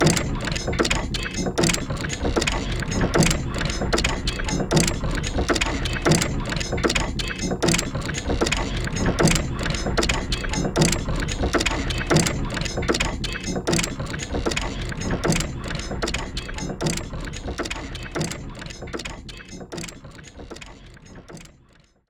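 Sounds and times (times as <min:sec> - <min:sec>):
clock gears: 0:00.0 - 0:22.0.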